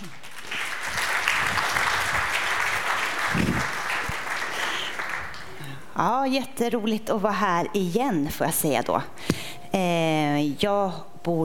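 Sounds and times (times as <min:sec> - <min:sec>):
audience applause welcoming a speaker: 0:00.0 - 0:05.6
speech: 0:06.0 - 0:11.4.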